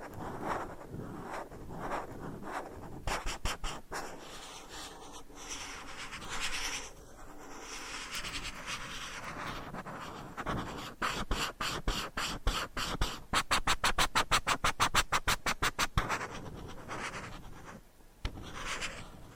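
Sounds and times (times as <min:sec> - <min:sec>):
brushing and scraping strokes: 0:00.0 - 0:17.7.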